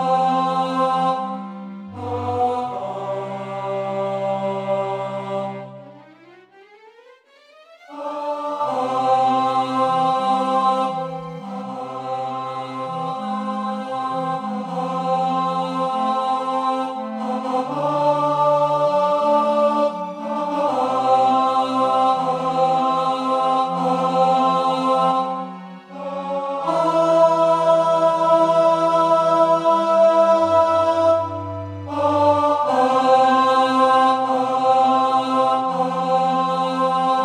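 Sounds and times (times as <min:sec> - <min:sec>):
tenor singing: 0:00.0 - 0:37.2.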